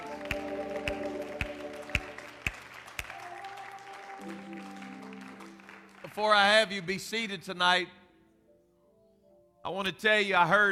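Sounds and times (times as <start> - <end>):
audience clapping: 0.0 - 7.3
speech: 6.2 - 8.0, 9.7 - 10.7.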